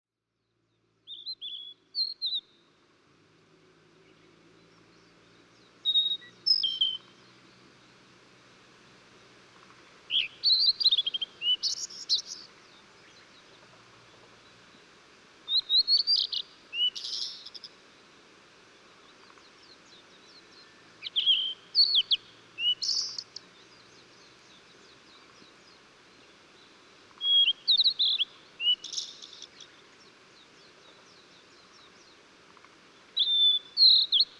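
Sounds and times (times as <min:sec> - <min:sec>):
Blue-and-white flycatcher song of clear slurred whistles and sharp high notes: 0:01.0 - 0:02.6, 0:04.8 - 0:07.4, 0:10.1 - 0:13.4, 0:15.5 - 0:17.7, 0:19.2 - 0:32.2, 0:33.2 - 0:34.3.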